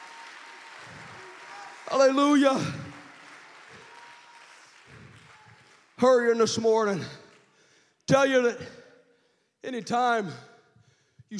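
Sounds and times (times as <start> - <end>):
audience clapping hands: 0.0 - 7.6
speech: 1.9 - 2.8, 6.0 - 7.2, 8.1 - 8.8, 9.6 - 10.5.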